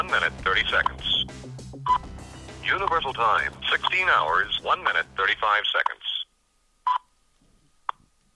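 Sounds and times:
speech: 0.1s - 6.0s
master clock time signal tone: 1.9s - 2.1s.

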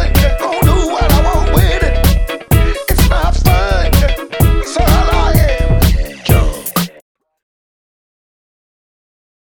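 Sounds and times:
funk remix: 0.0s - 7.0s.

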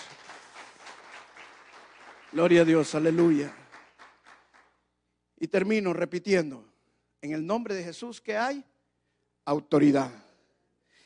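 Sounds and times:
crowd applause: 0.0s - 4.7s
speech: 2.3s - 3.6s, 5.4s - 8.7s, 9.4s - 10.2s.

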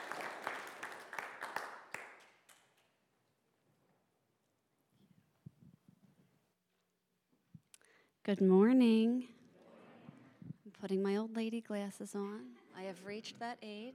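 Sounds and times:
audience applause: 0.0s - 2.4s
speech: 8.2s - 9.4s, 10.8s - 13.9s.

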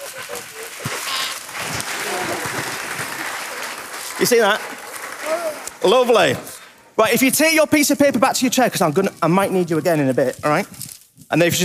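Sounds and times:
audience applause: 0.0s - 6.8s
speech: 4.2s - 11.6s.

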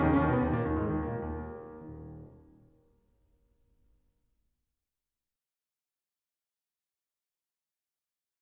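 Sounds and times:
prelude in E flat minor: 0.0s - 2.5s.

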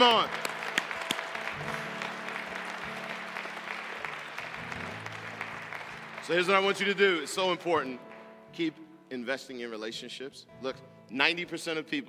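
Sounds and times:
speech: 0.0s - 0.4s, 6.3s - 12.0s
audience clapping: 0.0s - 8.4s.

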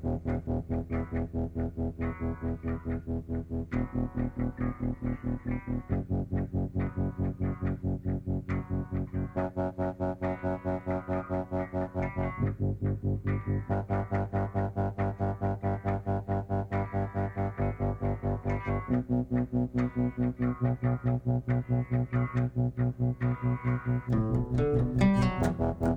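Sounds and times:
bass pedal shifting notes: 0.0s - 25.9s
distorted electric guitar riff in E minor: 0.0s - 25.9s.

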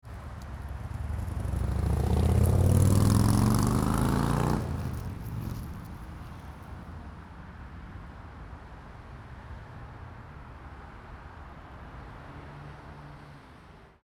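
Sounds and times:
motorcycle outdoors: 0.0s - 7.6s.

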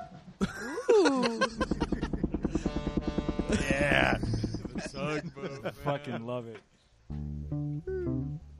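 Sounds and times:
laughter: 0.4s - 2.7s, 3.5s - 6.4s
speech: 1.1s - 1.8s, 5.1s - 8.5s
synthesized tugboat sound effect played on keyboard: 1.4s - 5.4s.

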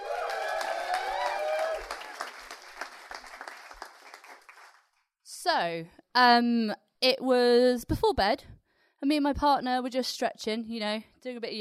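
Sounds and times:
high whoops and cheers: 0.0s - 2.2s
audience applause: 0.0s - 4.9s
speech: 5.5s - 11.6s.

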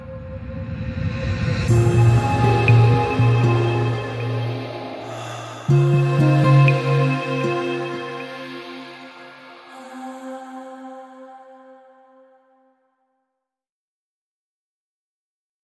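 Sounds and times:
experimental song: 1.7s - 12.2s.

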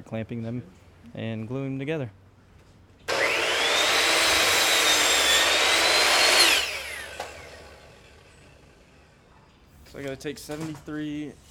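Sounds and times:
speech: 0.1s - 2.2s, 10.0s - 11.4s
miter saw cutting a board to length: 3.1s - 8.9s.

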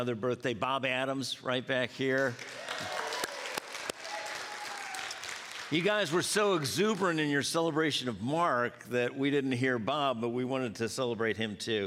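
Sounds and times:
speech: 0.0s - 3.0s, 5.7s - 11.8s
audience applause: 2.2s - 6.7s.

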